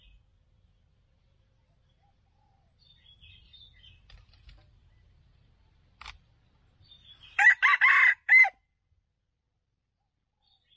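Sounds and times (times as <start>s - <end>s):
red junglefowl crowing: 7.3s - 8.6s.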